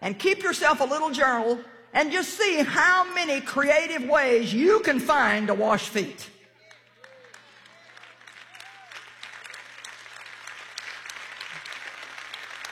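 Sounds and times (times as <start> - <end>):
speech: 0.0 - 6.4
audience clapping: 6.5 - 12.7.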